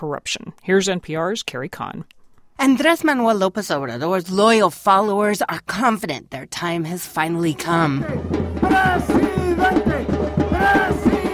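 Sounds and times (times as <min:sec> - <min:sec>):
speech: 0:00.0 - 0:09.8
rally crowd chanting in unison: 0:07.5 - 0:11.3.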